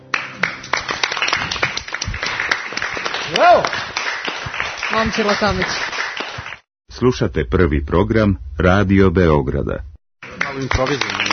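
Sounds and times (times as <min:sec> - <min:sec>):
audience clapping: 0:00.0 - 0:06.7, 0:10.2 - 0:11.3
speech: 0:03.3 - 0:03.8, 0:04.9 - 0:05.9, 0:07.0 - 0:09.9, 0:10.6 - 0:11.2.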